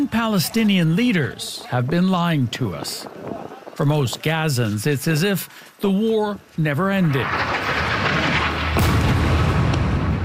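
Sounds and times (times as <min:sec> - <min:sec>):
speech: 0:00.1 - 0:07.8
airstrike explosion on a mosque and refugee camp: 0:07.1 - 0:10.2
sharp explosion burst: 0:07.2 - 0:10.2
smaller crack: 0:07.2 - 0:10.2.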